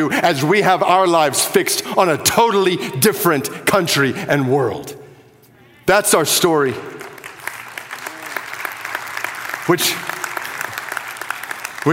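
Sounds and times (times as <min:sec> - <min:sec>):
speech: 0:00.0 - 0:05.0, 0:05.9 - 0:07.0, 0:09.7 - 0:10.1
audience applause: 0:07.1 - 0:11.9.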